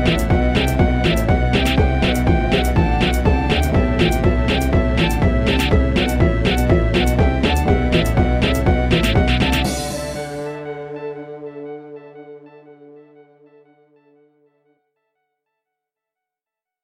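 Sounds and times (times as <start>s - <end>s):
house music: 0.0s - 12.4s.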